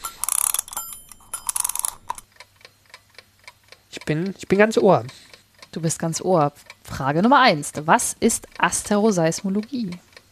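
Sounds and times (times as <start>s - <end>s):
mechanical alarm clock being wound: 0.0s - 2.4s
speech: 4.1s - 5.2s, 5.8s - 10.1s.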